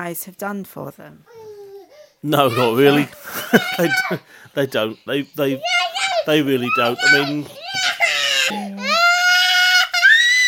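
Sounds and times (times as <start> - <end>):
speech: 0.0 - 1.4, 2.2 - 8.8
toddler crying in a full tantrum: 1.3 - 4.2, 5.5 - 10.4
laughter: 2.5 - 5.2.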